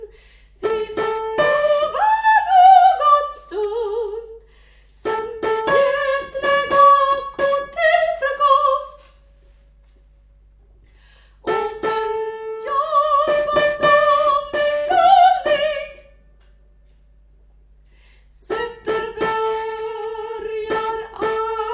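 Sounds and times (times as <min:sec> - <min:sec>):
soprano singing: 0:00.6 - 0:04.4, 0:05.0 - 0:09.1, 0:11.4 - 0:16.2, 0:18.4 - 0:21.7.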